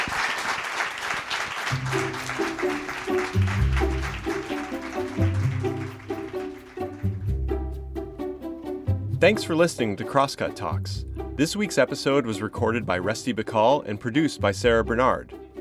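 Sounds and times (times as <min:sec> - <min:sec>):
audience applause: 0:00.0 - 0:07.3
speech: 0:09.2 - 0:15.4.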